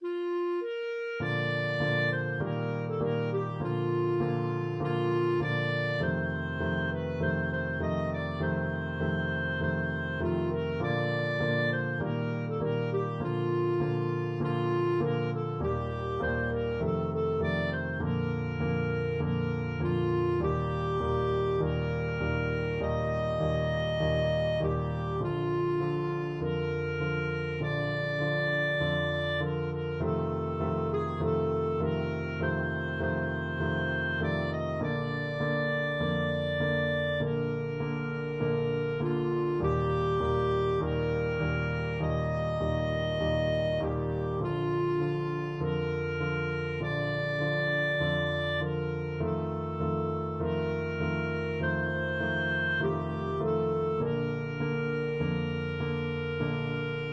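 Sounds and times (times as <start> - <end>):
clarinet melody: 0.0 - 57.1.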